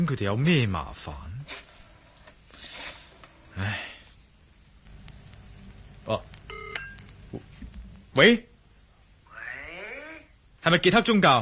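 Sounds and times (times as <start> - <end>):
speech: 0.0 - 1.6, 3.6 - 3.9, 6.1 - 6.3, 8.2 - 8.5, 10.6 - 11.3
sniff-like sound: 2.5 - 3.2
electronic touch-tone beeps dialing a phone number: 6.5 - 7.1.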